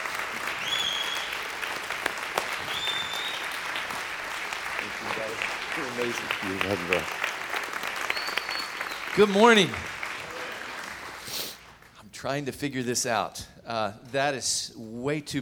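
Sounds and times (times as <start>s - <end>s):
church congregation clapping welcoming a guest speaker: 0.0s - 12.0s
speech: 6.0s - 7.2s, 9.2s - 9.9s, 12.2s - 15.4s.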